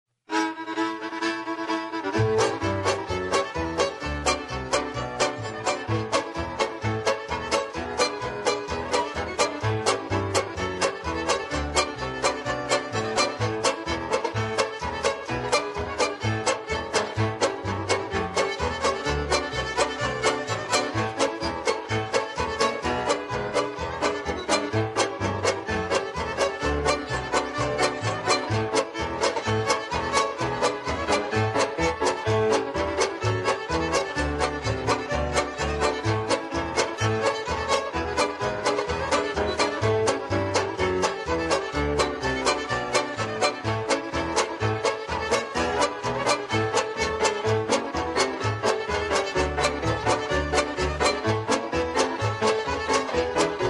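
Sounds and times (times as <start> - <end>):
instrumental square dance hoedown music: 0.6 - 53.6.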